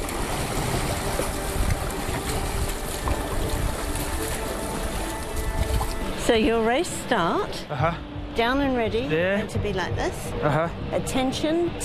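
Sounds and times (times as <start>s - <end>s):
dragon boat with 14 people pushing off from dock: 0.0s - 7.4s
speech: 6.3s - 11.8s.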